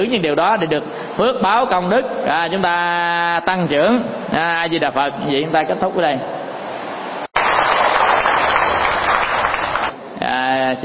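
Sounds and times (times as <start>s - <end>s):
speech: 0.0s - 6.4s, 10.3s - 10.8s
afternoon rain pouring: 7.4s - 10.0s.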